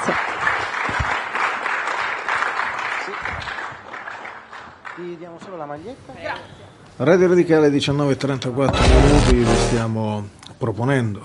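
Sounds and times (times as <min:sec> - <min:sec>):
audience applause: 0:00.0 - 0:04.6
speech: 0:05.0 - 0:11.2.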